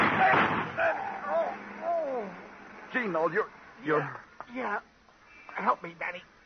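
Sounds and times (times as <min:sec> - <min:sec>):
staged gunshot in a radio crime drama: 0:00.0 - 0:01.0
speech: 0:03.0 - 0:04.9, 0:05.6 - 0:06.3.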